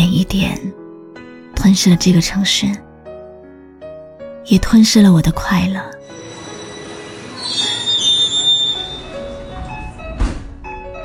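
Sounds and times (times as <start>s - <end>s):
speech: 1.6s - 2.8s, 4.5s - 6.0s
subway train rumbling along its tracks: 6.0s - 11.0s
subway train wheels squealing: 6.0s - 11.0s.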